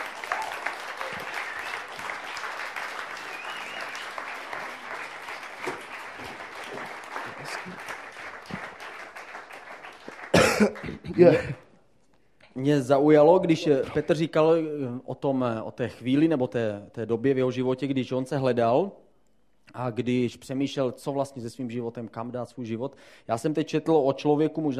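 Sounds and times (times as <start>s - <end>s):
audience applause: 0.0s - 11.0s
speech: 10.6s - 11.6s, 12.6s - 19.0s, 19.7s - 24.7s.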